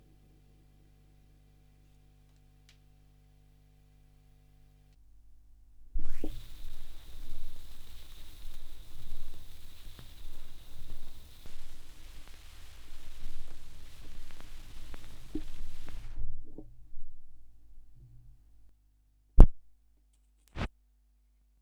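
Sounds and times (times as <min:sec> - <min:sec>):
vinyl record crackle with tape echo: 0:06.0 - 0:18.6.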